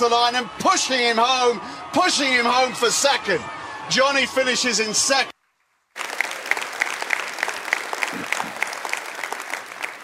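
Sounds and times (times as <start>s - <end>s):
speech: 0.0s - 5.3s
audience clapping: 5.9s - 10.0s.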